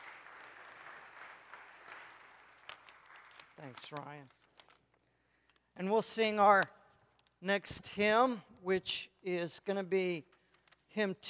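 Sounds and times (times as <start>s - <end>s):
church congregation applause: 0.0s - 4.0s
speech: 3.6s - 4.4s, 5.8s - 6.8s, 7.4s - 11.2s.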